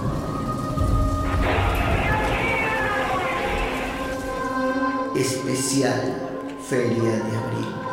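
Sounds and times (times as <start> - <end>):
deep rolling rumble: 0.0 - 4.9
stormy rain from an approaching storm: 0.0 - 5.5
speech: 5.2 - 7.8.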